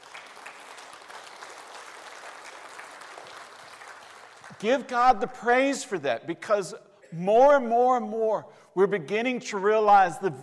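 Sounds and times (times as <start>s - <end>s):
audience applause: 0.0s - 4.6s
speech: 4.6s - 10.4s.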